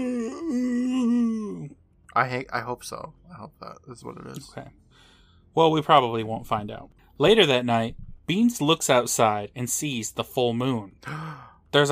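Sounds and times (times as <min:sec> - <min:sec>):
voice imitating a werewolf howl: 0:00.0 - 0:01.8
speech: 0:02.2 - 0:11.8.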